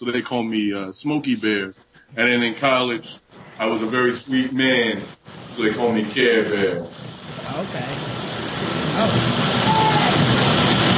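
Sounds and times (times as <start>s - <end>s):
speech: 0.0s - 8.2s, 9.0s - 9.7s
faint high whine: 0.0s - 10.9s
passing train rumble: 5.9s - 10.9s.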